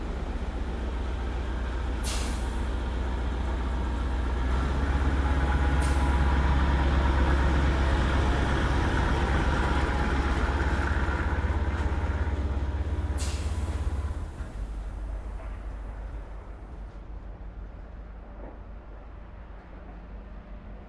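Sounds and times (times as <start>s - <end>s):
cargo train tank car passing slowly close in port railroad yard: 0.0s - 20.8s.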